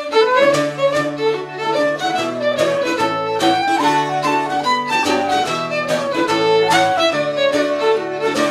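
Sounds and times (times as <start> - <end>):
orchestra ambience: 0.2 - 8.4.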